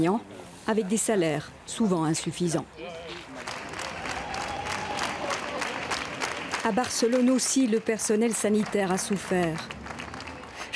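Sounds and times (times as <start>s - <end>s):
speech: 0.0s - 3.1s, 6.6s - 9.7s
people applauding: 3.1s - 10.7s.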